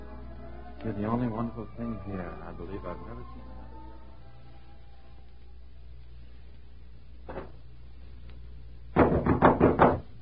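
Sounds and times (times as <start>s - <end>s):
speech: 0.8s - 3.8s
knocking on a door: 9.0s - 10.1s.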